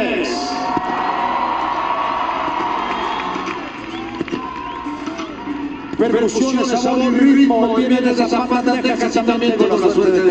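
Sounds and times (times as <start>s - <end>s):
crowd applauding: 0.5s - 5.9s
speech: 6.0s - 10.2s.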